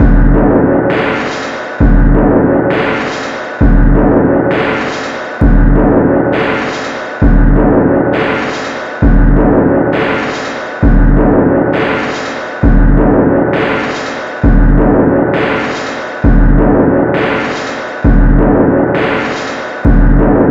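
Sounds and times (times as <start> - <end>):
looping record locked groove: 0.0 - 20.4.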